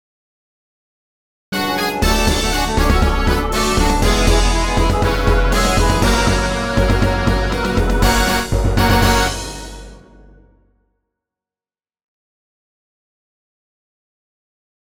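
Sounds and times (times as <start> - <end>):
jingle: 1.6 - 10.5.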